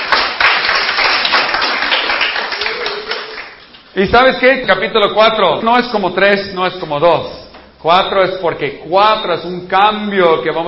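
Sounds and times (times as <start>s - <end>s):
audience applause: 0.0s - 3.6s
speech: 4.0s - 10.6s.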